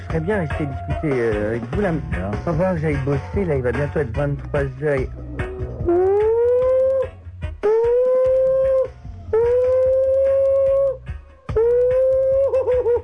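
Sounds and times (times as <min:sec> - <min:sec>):
speech: 0:00.1 - 0:06.1
voice imitating an air-raid siren: 0:05.1 - 0:12.5.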